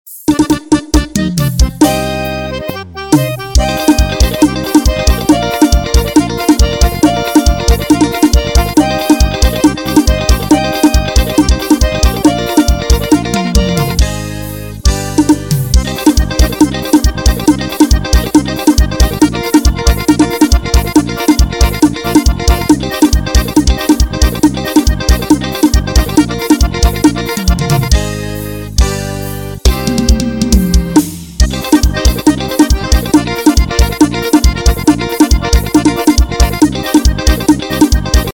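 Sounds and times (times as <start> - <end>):
vaneirão music playback: 0.1 - 38.3.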